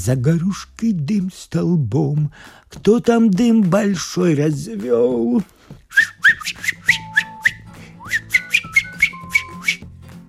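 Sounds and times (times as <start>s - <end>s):
speech: 0.0s - 6.8s
person whistling a familiar tune: 5.9s - 10.2s.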